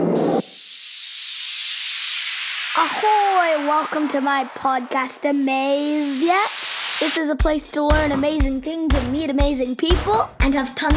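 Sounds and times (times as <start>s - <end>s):
rocket engine igniting at launch: 0.0s - 7.2s
speech: 2.8s - 10.9s.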